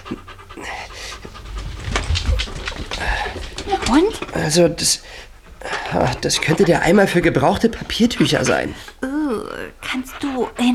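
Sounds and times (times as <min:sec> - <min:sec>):
dog panting and sniffing: 0:00.0 - 0:10.7
steady low rumble: 0:00.9 - 0:04.3
speech: 0:03.9 - 0:05.3, 0:05.9 - 0:09.5.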